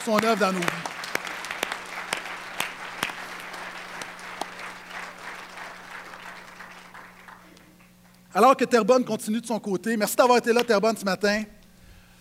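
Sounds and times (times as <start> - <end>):
speech: 0.0 - 0.9, 8.4 - 11.6
audience applauding: 0.0 - 8.2
low steady hum: 0.0 - 12.2.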